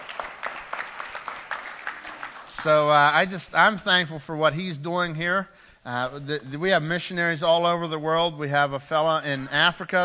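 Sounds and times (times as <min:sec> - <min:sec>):
room full of people clapping: 0:00.0 - 0:03.0
speech: 0:02.6 - 0:10.0.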